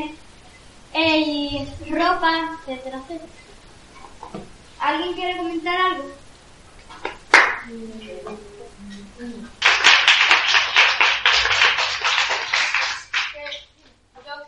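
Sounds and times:
speech: 1.0 - 3.5, 4.3 - 6.2, 7.6 - 8.6
audience applause: 9.6 - 13.6.

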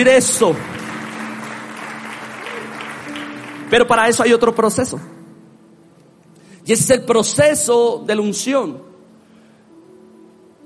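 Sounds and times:
speech: 0.0 - 0.8, 3.7 - 5.2, 6.6 - 8.9
audience applause: 0.3 - 4.0.

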